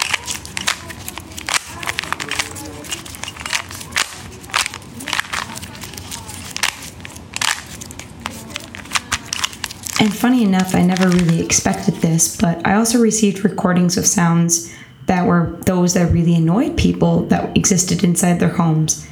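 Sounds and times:
Rubik's Cube being twisted: 0:00.0 - 0:12.2
low murmur: 0:00.0 - 0:19.1
speech: 0:10.0 - 0:19.1.

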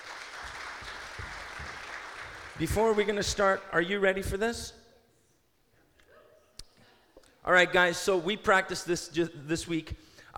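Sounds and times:
audience applause welcoming a boy onto a stage: 0:00.0 - 0:03.2
speech: 0:02.6 - 0:04.8, 0:07.5 - 0:10.3.

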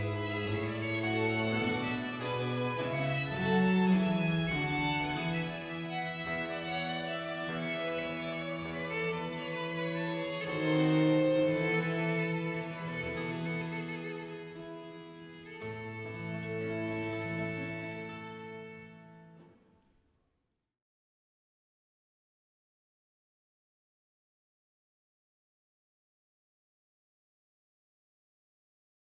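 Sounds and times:
sonata in B-flat major allegro: 0:00.0 - 0:19.5.

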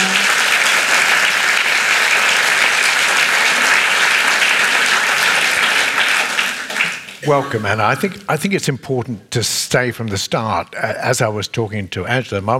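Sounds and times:
audience applause for an author joining the stage: 0:00.0 - 0:08.1
speech: 0:07.3 - 0:12.5.

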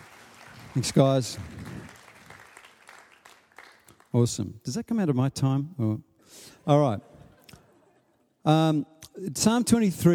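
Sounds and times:
audience applause for the band: 0:00.0 - 0:04.1
speech: 0:00.8 - 0:01.6, 0:04.2 - 0:07.1, 0:08.4 - 0:10.1.

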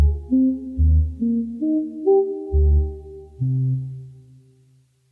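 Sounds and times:
synth: 0:00.0 - 0:04.1.

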